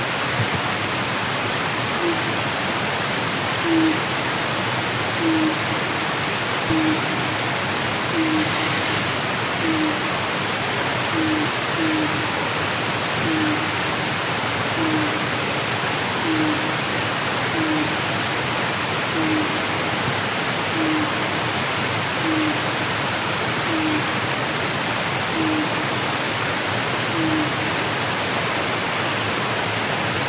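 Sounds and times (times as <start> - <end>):
rushing background hiss: 0.0 - 30.2
Japanese night heron hooting: 2.0 - 2.4, 3.6 - 4.1, 5.2 - 10.3, 11.0 - 12.4, 13.2 - 13.8, 14.7 - 15.3, 16.2 - 18.1, 19.0 - 19.8, 20.7 - 21.4, 22.1 - 22.8, 23.6 - 24.1, 25.3 - 26.0, 27.1 - 27.8.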